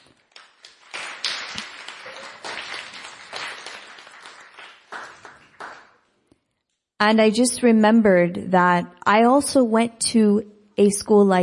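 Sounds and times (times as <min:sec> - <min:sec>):
audience applause: 0:00.0 - 0:06.0
speech: 0:07.0 - 0:11.4.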